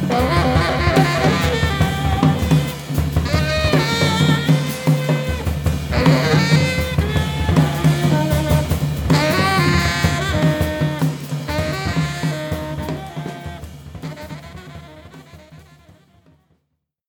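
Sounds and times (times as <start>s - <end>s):
free jazz music: 0.0s - 16.4s.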